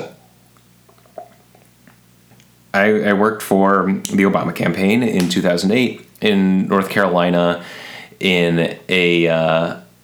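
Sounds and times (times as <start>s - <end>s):
sipping water: 0.0s - 9.7s
speech: 2.8s - 9.8s.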